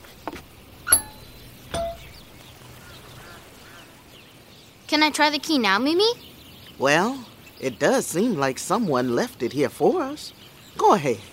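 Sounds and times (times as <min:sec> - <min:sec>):
doorbell ringing: 0:00.9 - 0:02.2
speech: 0:04.9 - 0:11.3.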